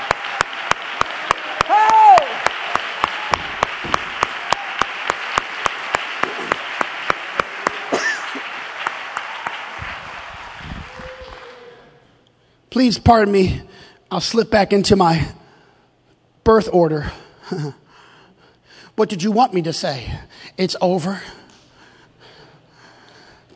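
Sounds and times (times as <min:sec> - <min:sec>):
audience applause: 0:00.0 - 0:12.0
speech: 0:12.8 - 0:15.4, 0:16.5 - 0:17.8, 0:19.0 - 0:21.4.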